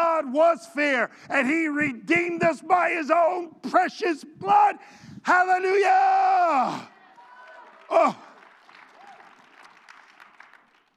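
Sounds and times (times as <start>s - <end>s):
speech: 0.2s - 6.9s, 7.9s - 8.3s
audience clapping: 6.9s - 10.9s.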